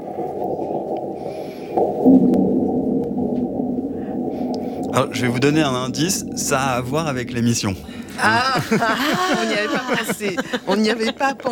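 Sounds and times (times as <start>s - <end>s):
sonified InSight seismometer recording of meteorite impact ground vibrations: 0.0s - 9.4s
speech: 5.0s - 11.4s
laughter: 8.1s - 11.4s.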